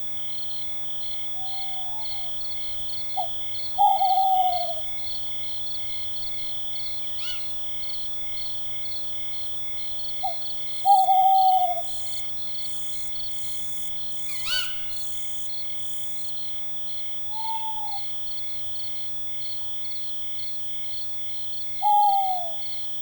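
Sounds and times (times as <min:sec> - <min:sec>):
owl in a forest: 0:01.2 - 0:05.1, 0:07.1 - 0:07.6, 0:09.8 - 0:16.4, 0:17.2 - 0:18.2, 0:21.7 - 0:22.8.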